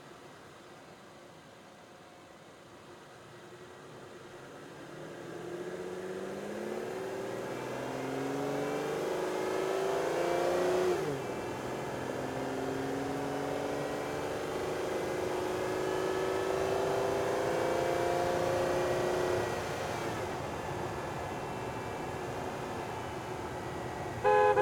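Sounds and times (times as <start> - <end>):
2005 Aston Martin DB9 engine onboard: 4.6 - 24.6
2005 Aston Martin DB9 horn: 24.2 - 24.6.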